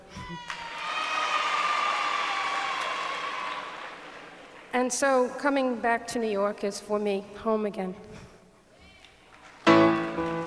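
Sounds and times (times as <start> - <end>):
audience applauding at live concert: 0.4 - 4.8, 9.2 - 10.4
speech: 4.7 - 8.2.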